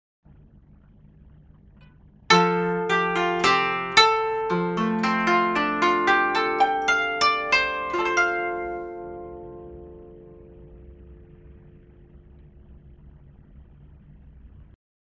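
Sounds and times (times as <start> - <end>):
koto: 2.3 - 11.8.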